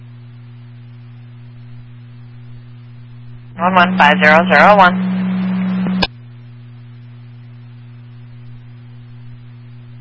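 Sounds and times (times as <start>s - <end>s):
speech: 3.6s - 5.1s
radio dispatch acknowledging tone: 3.6s - 6.1s.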